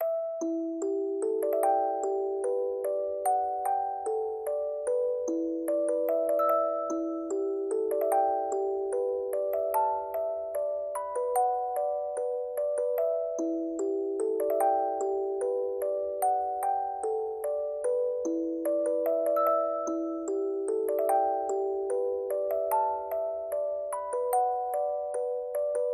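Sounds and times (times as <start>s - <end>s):
music box playing a prelude: 0.0s - 25.9s.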